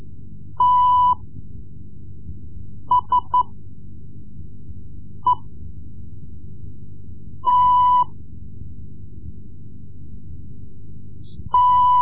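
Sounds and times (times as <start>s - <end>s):
Morse code lessons: 0.6s - 1.2s, 2.9s - 3.5s, 7.4s - 8.1s, 11.5s - 12.0s.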